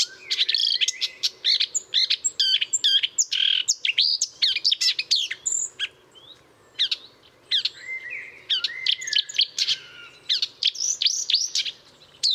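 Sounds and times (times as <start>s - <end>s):
Marsh warbler singing: 0.0s - 12.3s.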